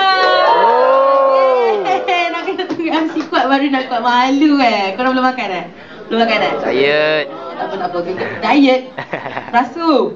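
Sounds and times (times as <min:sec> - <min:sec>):
audience cheering: 0:00.0 - 0:02.4
speech: 0:03.5 - 0:10.1
laughter: 0:06.6 - 0:10.1.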